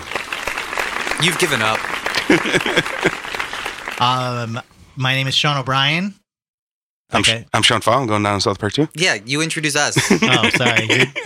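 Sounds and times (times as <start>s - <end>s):
hand clapping: 0.0s - 4.2s
speech: 1.2s - 3.4s, 4.0s - 6.2s, 7.1s - 11.2s
laughter: 1.2s - 4.0s, 10.0s - 11.2s.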